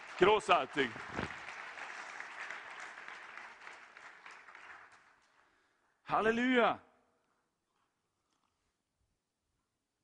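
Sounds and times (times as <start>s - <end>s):
audience applause: 0.0s - 5.4s
speech: 0.2s - 1.1s, 6.1s - 6.9s.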